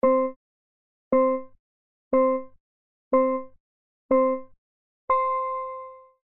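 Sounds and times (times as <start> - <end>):
countdown: 0.0 - 0.4, 1.1 - 1.6, 2.2 - 6.0.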